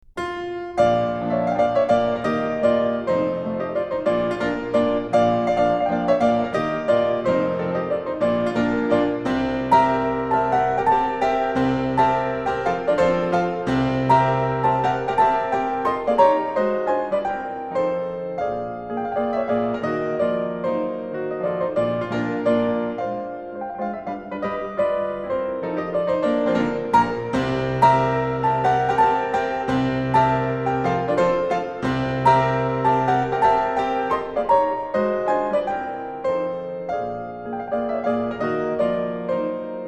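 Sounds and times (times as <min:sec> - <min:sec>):
solo piano mazurka in B flat: 0:00.0 - 0:39.8.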